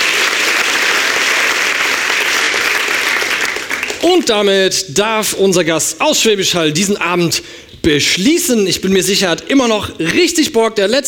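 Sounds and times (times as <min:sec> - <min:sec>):
sustained applause from a large audience: 0:00.0 - 0:04.3
speech: 0:04.0 - 0:11.0.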